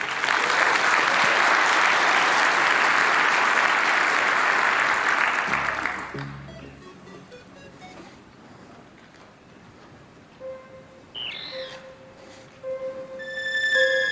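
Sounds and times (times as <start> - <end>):
audience applause: 0.0 - 6.5.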